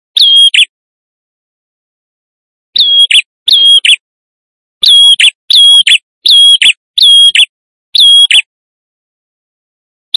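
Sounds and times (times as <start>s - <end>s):
male prinia in vigorous song used as a lure: 0.1s - 0.7s, 2.8s - 4.0s, 4.8s - 8.5s.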